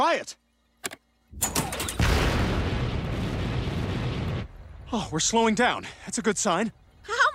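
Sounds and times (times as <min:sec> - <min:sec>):
speech: 0:00.0 - 0:01.6, 0:04.9 - 0:07.2
spaceship retro rockets crackling burst: 0:01.7 - 0:05.6.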